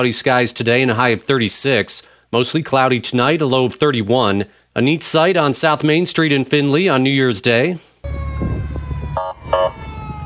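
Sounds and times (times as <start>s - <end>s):
speech: 0.0s - 8.3s
emergency vehicle sirens whooping in a parade: 8.0s - 10.2s
steady low engine rumble: 8.0s - 10.2s.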